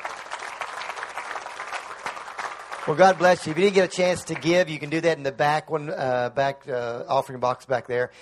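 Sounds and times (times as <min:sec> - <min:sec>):
audience at a church service clapping: 0:00.0 - 0:05.2
speech: 0:02.8 - 0:08.2.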